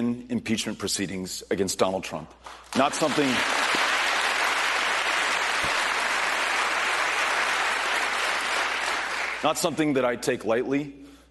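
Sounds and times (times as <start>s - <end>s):
speech: 0.0s - 3.9s, 9.4s - 11.0s
town hall audience applause: 2.7s - 9.4s.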